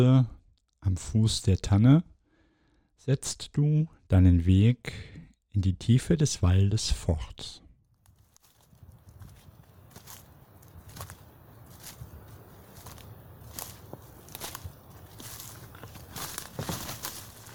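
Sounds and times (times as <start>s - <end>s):
speech: 0.0s - 2.1s, 3.0s - 7.6s
rustling in the forest undergrowth: 8.0s - 17.5s.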